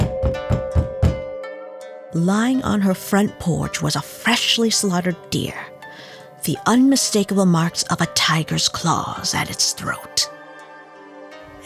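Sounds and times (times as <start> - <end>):
knocking on a door: 0.0 - 1.3
speech: 2.1 - 5.7, 6.4 - 10.3.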